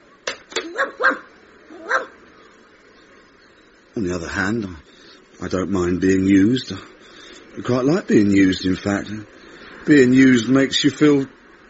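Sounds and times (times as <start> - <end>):
stray dog barking: 0.6 - 2.2
speech: 4.0 - 7.0, 7.6 - 11.4.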